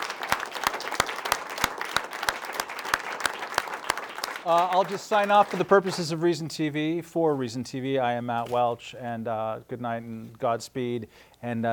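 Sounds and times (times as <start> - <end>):
audience applause: 0.0 - 6.3
speech: 4.4 - 11.7.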